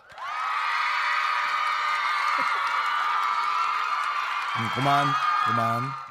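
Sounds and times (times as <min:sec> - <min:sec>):
standing ovation applause: 0:00.0 - 0:06.0
speech: 0:04.6 - 0:06.0.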